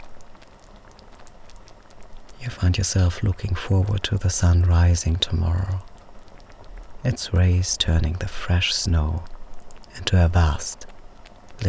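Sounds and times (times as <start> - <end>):
speech: 2.4 - 5.9, 7.0 - 9.4, 10.0 - 10.9
gentle bubbling of an apparatus: 2.4 - 6.0, 6.7 - 11.0.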